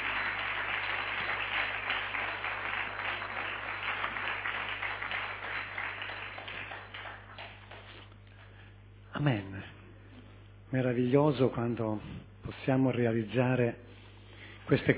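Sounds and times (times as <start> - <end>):
audience applause: 0.0 - 8.1
faint low hum: 0.0 - 14.9
speech: 9.2 - 9.7, 10.7 - 13.9, 14.7 - 14.9.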